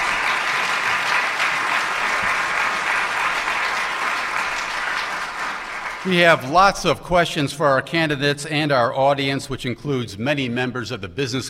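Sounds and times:
audience applause: 0.0 - 6.7
speech: 6.0 - 11.4.

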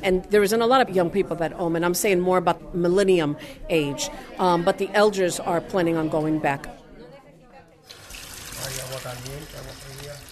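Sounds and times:
speech: 0.0 - 6.8, 8.7 - 10.3
water running from a faucet: 7.9 - 10.3.

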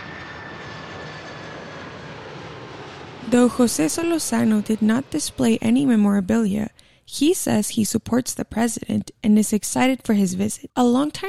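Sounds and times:
Air Force One jet engine roar approaching Yuma airport: 0.0 - 6.7
speech: 3.3 - 11.2.

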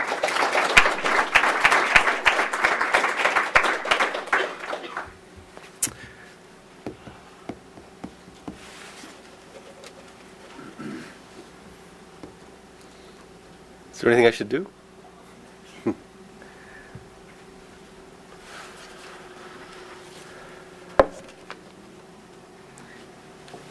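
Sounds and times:
audience applause welcoming a political cartoonist at a forum: 0.0 - 5.2
speech: 14.0 - 14.8.

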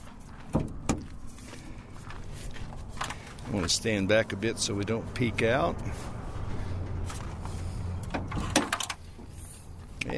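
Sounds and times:
low outdoor rumble: 0.0 - 10.1
truck hood being opened: 0.5 - 1.1, 8.0 - 9.0
speech: 3.5 - 6.2.

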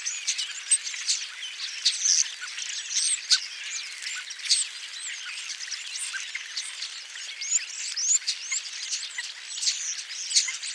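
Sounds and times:
European starling flock chattering: 0.0 - 10.7.

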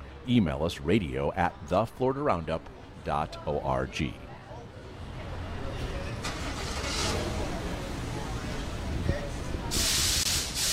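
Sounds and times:
traffic and engine noise at a gas station along US 1: 0.0 - 10.7
speech: 0.2 - 4.3
bright hissing burst: 9.7 - 10.7.

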